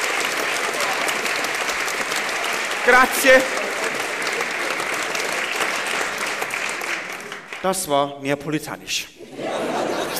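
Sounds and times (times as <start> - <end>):
audience applause: 0.0 - 7.9
speech: 2.9 - 3.7, 7.6 - 9.8
laughter: 3.3 - 5.8, 9.2 - 10.1.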